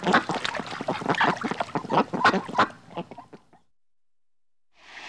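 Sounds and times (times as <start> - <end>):
ducks quacking in a flock: 0.0 - 3.5.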